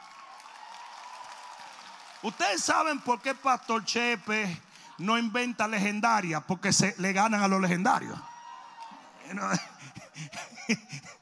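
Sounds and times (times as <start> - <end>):
women applauding: 0.0 - 6.0, 8.2 - 9.8
speech: 2.2 - 8.3, 9.3 - 11.2
laughter: 9.2 - 11.2.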